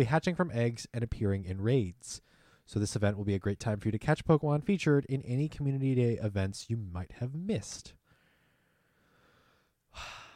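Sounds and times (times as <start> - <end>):
speech: 0.0 - 8.0, 10.0 - 10.2
deep breath: 2.2 - 2.7, 8.0 - 10.3.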